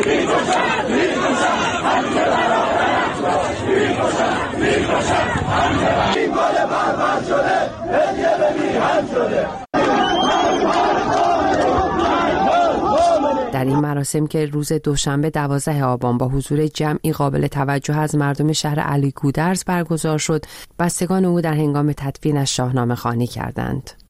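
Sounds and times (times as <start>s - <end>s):
speech: 0.0s - 1.1s, 13.6s - 24.0s
funeral crowd chanting protest slogans: 0.0s - 13.8s.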